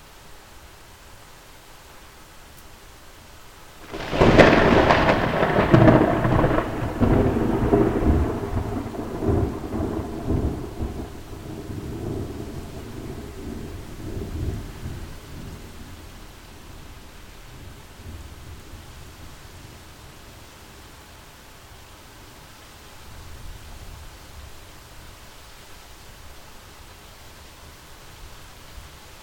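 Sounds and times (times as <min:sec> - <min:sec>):
thunder: 0:03.8 - 0:15.9.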